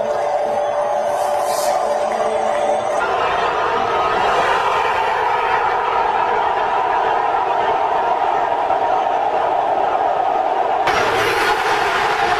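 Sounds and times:
roar of SoFi stadium crowd: 0.0s - 12.3s.

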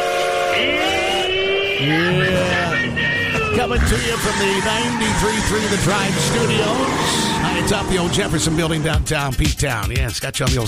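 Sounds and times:
quitting-time whistle: 0.0s - 4.2s
speech: 0.6s - 0.8s, 1.8s - 2.3s, 3.6s - 10.6s.

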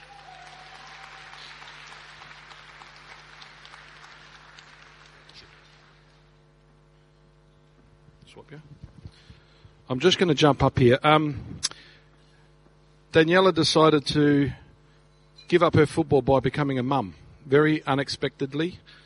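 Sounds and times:
round of applause: 0.0s - 6.3s
speech: 8.3s - 9.3s, 9.9s - 11.5s, 13.2s - 14.6s, 15.4s - 19.0s.

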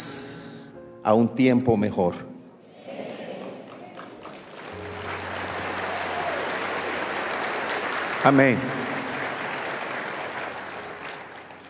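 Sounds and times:
speech: 1.0s - 2.3s, 8.2s - 8.9s
applause in a church service: 3.1s - 11.6s.

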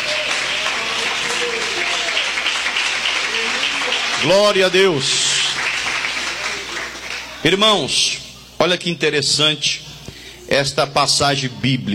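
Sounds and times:
audience clapping hands loudly: 0.0s - 7.5s
speech: 4.2s - 5.3s, 7.4s - 9.8s, 10.5s - 11.9s.

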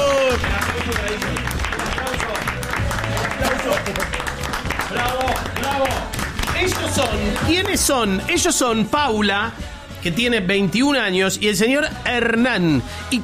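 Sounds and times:
audience applause: 0.0s - 7.7s
speech: 6.6s - 13.2s.

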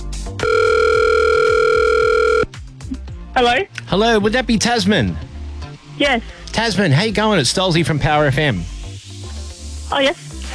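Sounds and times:
telephone dial tone while calling: 0.4s - 2.5s
speech: 3.4s - 5.2s, 6.0s - 8.7s, 9.9s - 10.5s.

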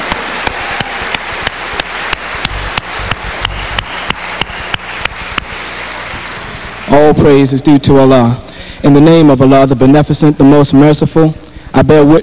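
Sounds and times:
audience applause: 0.0s - 7.1s
speech: 6.9s - 12.2s.

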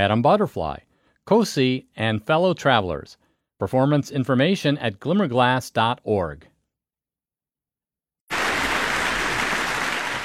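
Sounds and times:
speech: 0.0s - 6.5s
concert audience applauding at the Lockenhaus Festival: 8.3s - 10.2s.

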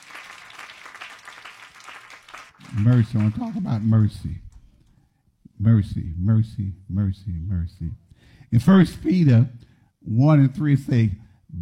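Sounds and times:
church congregation clapping during a sermon: 0.0s - 4.6s
speech: 2.8s - 4.4s, 5.6s - 11.5s.

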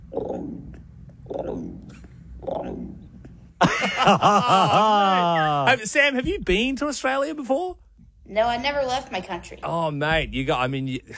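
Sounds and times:
person imitating an emu with booming grunts: 0.0s - 3.0s
laughter: 3.6s - 5.9s
speech: 4.0s - 11.1s.

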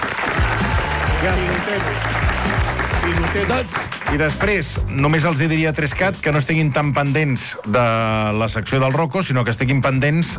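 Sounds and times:
applause: 0.0s - 6.0s
speech: 1.2s - 10.3s.

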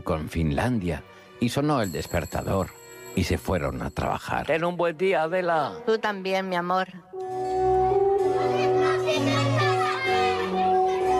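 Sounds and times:
speech: 0.1s - 7.4s, 9.2s - 9.5s
children playing at a daycare: 8.2s - 11.1s.

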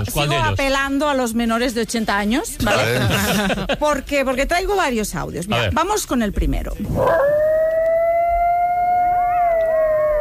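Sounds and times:
speech: 0.0s - 7.5s
laughter: 2.6s - 4.0s
coyote howling: 7.0s - 10.1s.

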